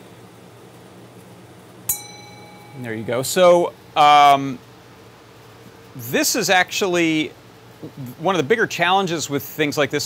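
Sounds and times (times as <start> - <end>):
chime from solenoid striking a bowl: 1.9 - 3.7
speech: 2.8 - 4.7, 6.0 - 10.0.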